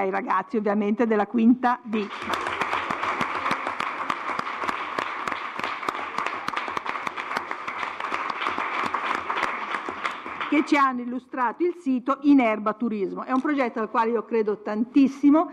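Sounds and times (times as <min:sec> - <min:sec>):
speech: 0:00.0 - 0:02.5, 0:10.5 - 0:15.5
audience applause: 0:02.0 - 0:10.8.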